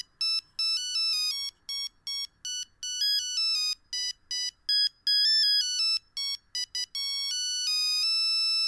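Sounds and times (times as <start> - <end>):
phone ringtone melody: 0.0 - 8.6.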